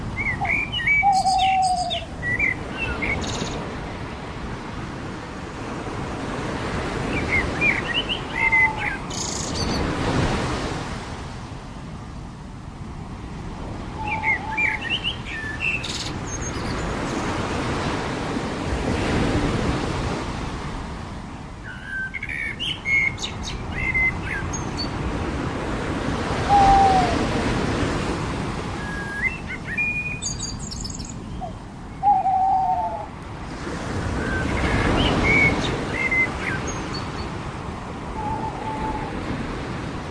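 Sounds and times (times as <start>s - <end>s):
ocean waves on the beach: 0.0s - 40.0s
birds on the beach: 0.1s - 4.1s, 6.8s - 10.1s, 13.8s - 17.8s, 21.6s - 25.0s, 28.8s - 33.2s, 34.1s - 37.4s.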